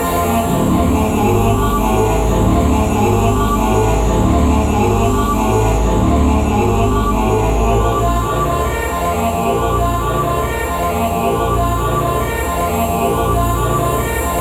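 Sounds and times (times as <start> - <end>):
choir singing: 0.0 - 14.3.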